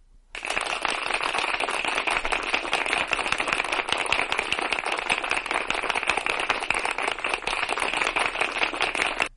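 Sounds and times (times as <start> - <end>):
crowd clapping: 0.4 - 9.3.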